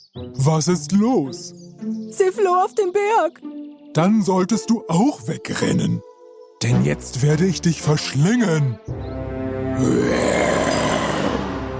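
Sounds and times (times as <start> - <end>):
speech: 0.2 - 9.2, 9.8 - 10.8
lion roaring: 9.8 - 11.7.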